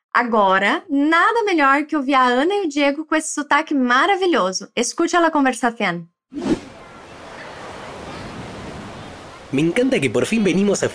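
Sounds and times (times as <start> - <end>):
speech: 0.2 - 6.7, 9.5 - 10.9
ocean surf on a beach: 6.6 - 10.8.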